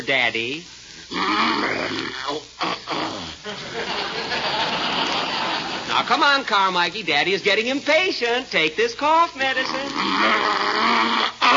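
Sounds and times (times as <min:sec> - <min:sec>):
speech: 0:00.0 - 0:04.8, 0:06.0 - 0:11.5
human voice imitating a bear growling and grunting: 0:01.1 - 0:03.6, 0:09.6 - 0:11.5
laughter: 0:03.4 - 0:06.2.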